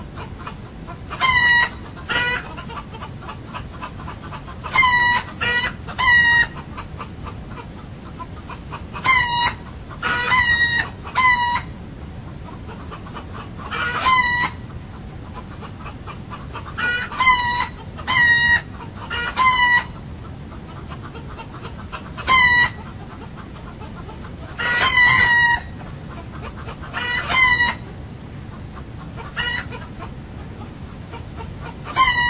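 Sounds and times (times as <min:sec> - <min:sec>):
steady background noise: 0:00.0 - 0:32.2
roosters crowing: 0:01.1 - 0:02.9, 0:04.6 - 0:06.6, 0:09.0 - 0:11.7, 0:13.7 - 0:14.7, 0:16.5 - 0:20.0, 0:22.0 - 0:22.9, 0:24.5 - 0:27.9, 0:29.1 - 0:30.0, 0:31.3 - 0:32.2.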